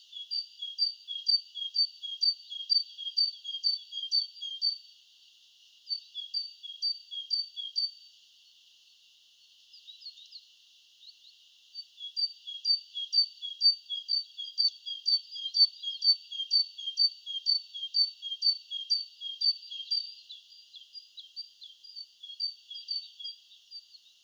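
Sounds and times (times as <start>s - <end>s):
great tit singing: 0.0s - 8.1s, 9.5s - 24.2s.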